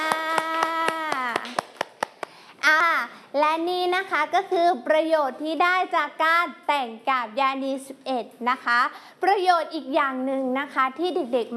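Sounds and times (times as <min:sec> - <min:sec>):
children clapping hands: 0:00.0 - 0:02.4
speech: 0:03.6 - 0:11.5.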